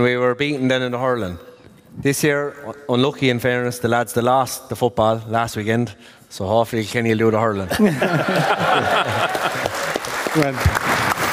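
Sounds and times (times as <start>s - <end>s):
speech: 0.0s - 9.6s, 10.4s - 10.9s
laughter: 7.7s - 10.6s
clapping: 9.0s - 11.3s.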